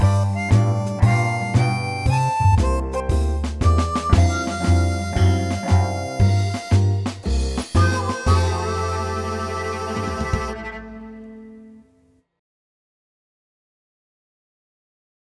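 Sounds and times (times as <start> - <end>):
blues cello playing: 0.0 - 12.0.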